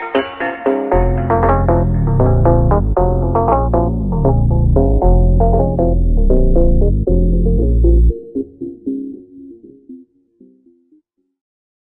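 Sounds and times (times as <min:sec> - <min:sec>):
slowed bass: 0:00.9 - 0:08.2.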